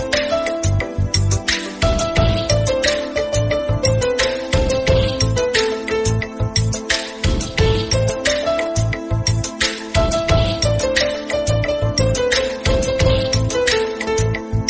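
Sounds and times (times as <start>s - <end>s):
south Indian Tamil love background music ringtone: 0.0s - 14.6s.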